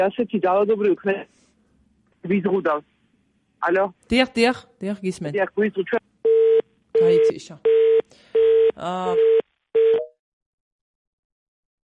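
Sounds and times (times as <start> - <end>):
speech: 0.0 - 1.4, 2.2 - 2.9, 3.6 - 6.1, 7.0 - 9.4
telephone tone after a phone line drops mid-call: 6.3 - 10.2.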